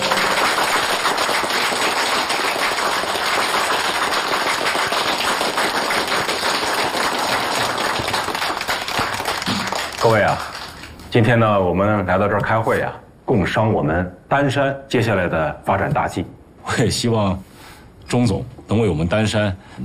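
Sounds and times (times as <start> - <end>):
applause: 0.0 - 11.2
speech: 11.1 - 17.5, 18.1 - 19.8.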